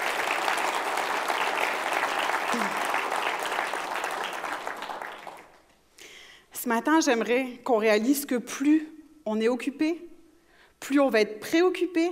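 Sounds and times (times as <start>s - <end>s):
church congregation applauding during a service: 0.0s - 5.7s
speech: 6.6s - 10.1s, 10.8s - 12.0s.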